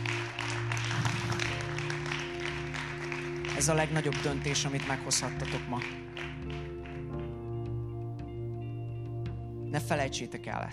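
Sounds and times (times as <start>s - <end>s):
crowd applauding: 0.0s - 7.8s
sustained low musical tones: 0.0s - 10.7s
speech: 3.6s - 6.1s, 9.8s - 10.7s.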